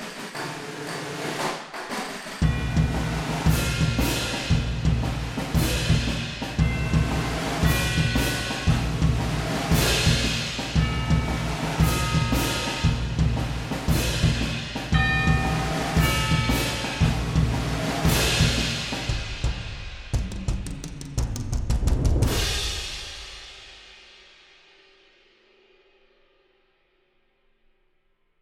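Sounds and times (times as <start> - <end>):
percussion cue: 0.0 - 23.4.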